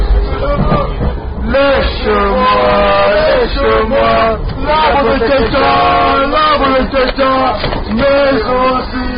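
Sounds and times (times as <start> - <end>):
rugby song: 0.2 - 9.0.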